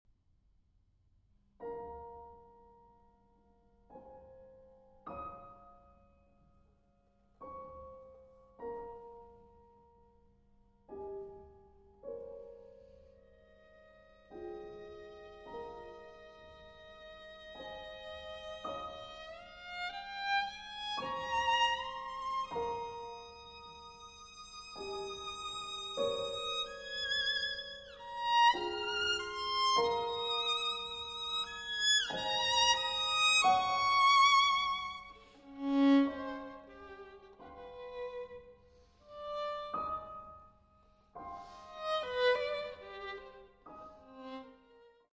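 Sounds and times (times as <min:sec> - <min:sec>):
violin and piano lullaby: 0:01.6 - 0:45.1.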